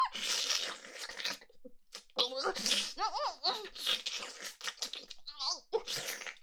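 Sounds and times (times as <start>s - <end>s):
wet sucking sounds: 0.2s - 3.0s, 3.6s - 5.2s, 5.9s - 6.4s.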